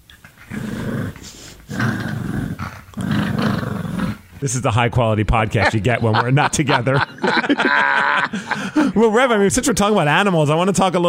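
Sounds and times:
dog Lulu growling on her back: 0:00.4 - 0:04.3
speech: 0:04.4 - 0:11.0
laughter: 0:05.3 - 0:10.4.

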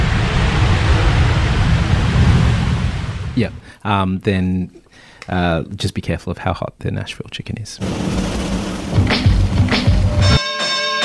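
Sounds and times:
plane landing: 0:00.0 - 0:03.7, 0:07.8 - 0:10.4
speech: 0:03.4 - 0:08.5.

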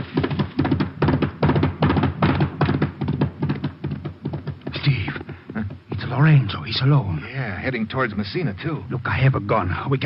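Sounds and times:
horse hoofbeats galloping: 0:00.0 - 0:07.0
speech: 0:06.2 - 0:10.0.

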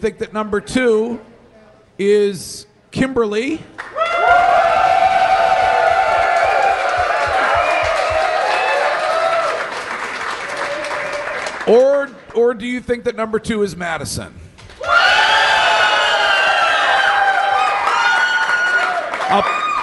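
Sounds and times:
speech: 0:00.0 - 0:01.3, 0:02.0 - 0:04.0, 0:11.7 - 0:14.5, 0:19.3 - 0:19.6
audience applause: 0:03.8 - 0:11.7, 0:14.7 - 0:19.8.

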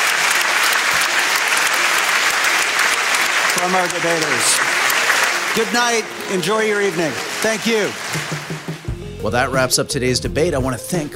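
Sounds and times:
audience applause after a debate: 0:00.0 - 0:08.9
speech: 0:03.6 - 0:04.8, 0:05.5 - 0:11.1.

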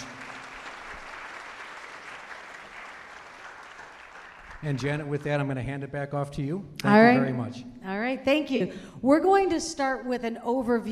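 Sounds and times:
audience round of applause: 0:00.0 - 0:05.5
speech: 0:04.6 - 0:10.8.

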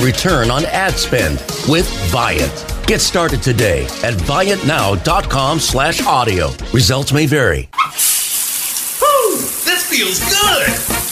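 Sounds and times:
speech: 0:00.0 - 0:08.2, 0:10.0 - 0:11.0
hot water running from a Navien tankless water heater: 0:07.8 - 0:11.0.

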